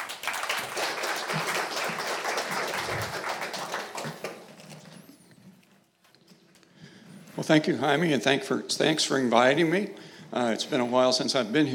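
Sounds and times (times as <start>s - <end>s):
audience applause: 0.0s - 4.7s
speech: 7.4s - 11.7s.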